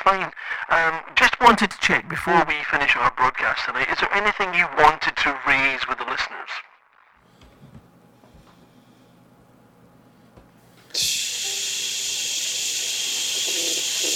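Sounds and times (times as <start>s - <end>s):
radio static hiss: 0.0s - 1.6s, 2.2s - 7.2s, 11.0s - 14.1s
speech: 0.0s - 6.6s.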